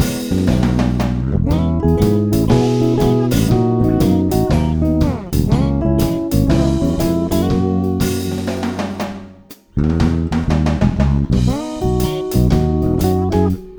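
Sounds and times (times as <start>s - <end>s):
reggae bass: 0.0s - 13.7s.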